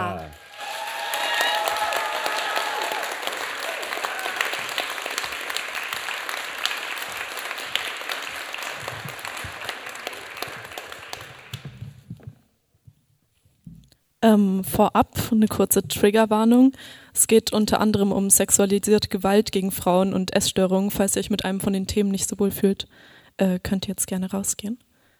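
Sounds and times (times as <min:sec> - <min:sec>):
crowd applause: 0:00.0 - 0:11.8
speech: 0:14.3 - 0:24.9.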